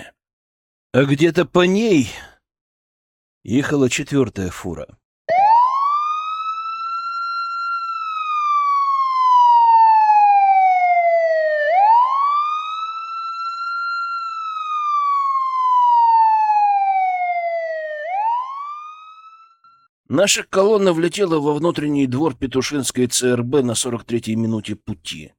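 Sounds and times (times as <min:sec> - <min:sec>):
speech: 0:00.9 - 0:02.3, 0:03.4 - 0:05.0, 0:20.1 - 0:25.3
ambulance siren wailing: 0:05.3 - 0:19.9.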